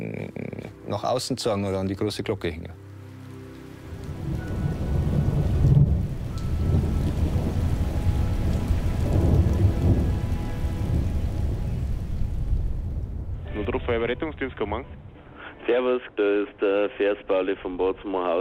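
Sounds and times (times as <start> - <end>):
speech: 0.1 - 2.8, 15.7 - 18.4
heavy rain in a thunderstorm: 0.1 - 15.6
low thunder rumbling and rolling: 3.9 - 15.2.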